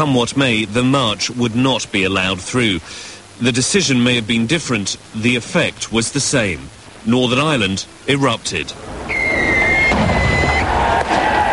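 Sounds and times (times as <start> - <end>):
speech: 0.0 - 9.1
fireworks thrown at police lines on the hill at Drumcree: 9.0 - 11.4.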